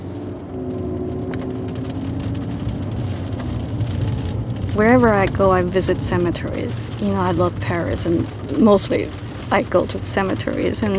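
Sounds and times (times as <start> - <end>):
car engine and road noise driving through Mountain View Cemetery, Oakland, California: 0.0 - 10.9
speech: 4.8 - 10.9.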